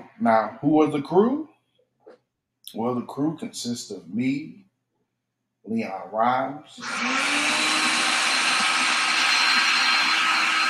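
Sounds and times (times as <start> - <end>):
speech: 0.2 - 1.5, 2.7 - 4.6, 5.6 - 7.8
blender puréeing watermelon, pineapple and papaya: 6.8 - 10.6.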